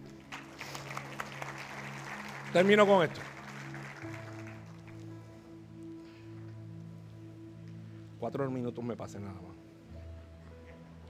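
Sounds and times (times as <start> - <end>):
crowd applause: 0.0 - 5.1
speech: 2.5 - 3.3, 8.3 - 9.6.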